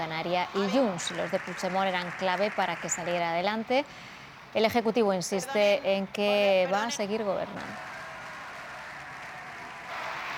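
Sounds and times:
speech: 0:00.0 - 0:07.9
Socialist Party members applauding in the Spanish parliament: 0:00.6 - 0:03.6, 0:07.5 - 0:10.3.

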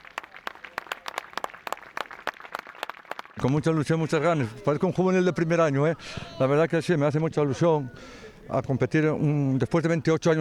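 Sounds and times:
Colunga football fans applauding: 0:00.0 - 0:03.6
speech: 0:03.4 - 0:10.4.

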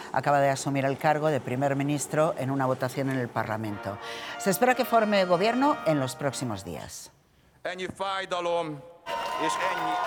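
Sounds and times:
speech: 0:00.2 - 0:10.0
applause and cheering for Peter Magyar arriving at Parliament: 0:09.1 - 0:10.0.

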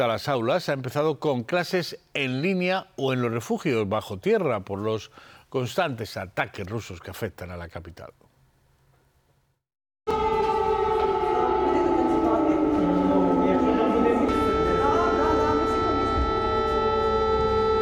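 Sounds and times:
speech: 0:00.0 - 0:08.3
air raid alarm siren: 0:10.1 - 0:17.8.

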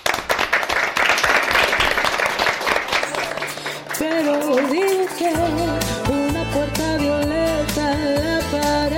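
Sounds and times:
audience applause: 0:00.0 - 0:05.4
speech: 0:04.0 - 0:08.8.

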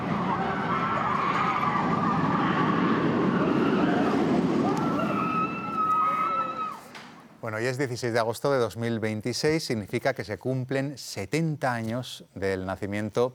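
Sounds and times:
roller coaster riders screaming: 0:00.0 - 0:07.3
speech: 0:07.4 - 0:13.3.

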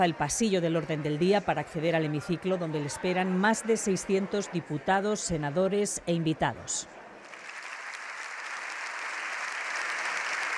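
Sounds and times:
speech: 0:00.0 - 0:07.0
applause in parliament chamber: 0:07.2 - 0:10.5.

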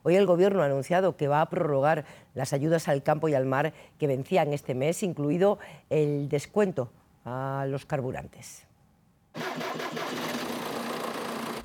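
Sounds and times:
speech: 0:00.0 - 0:08.7
tractor diesel engine starting and idling: 0:09.4 - 0:11.6.

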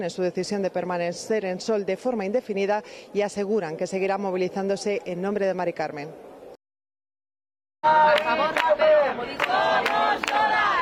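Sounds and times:
speech: 0:00.0 - 0:06.3, 0:07.8 - 0:08.6
protest camp crowd chanting a slogan: 0:07.8 - 0:10.7.

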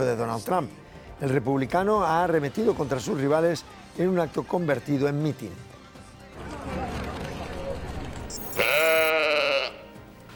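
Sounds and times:
speech: 0:00.0 - 0:05.7
sheep bleating: 0:08.3 - 0:10.0.

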